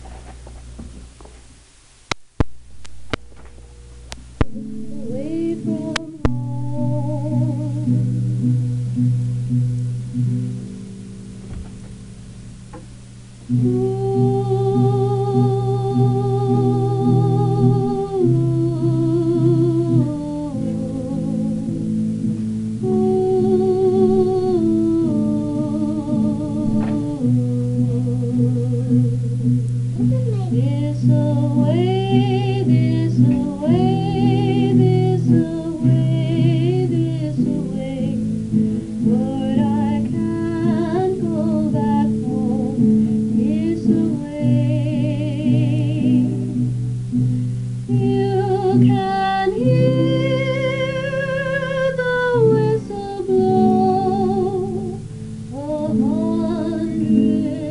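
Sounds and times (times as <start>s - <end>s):
guitar: 0.0s - 57.6s
alto voice singing: 3.1s - 8.6s, 13.5s - 57.6s.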